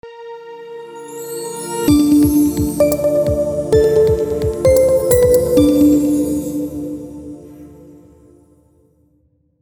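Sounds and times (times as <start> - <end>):
inspiring logo music: 1.0 - 8.2.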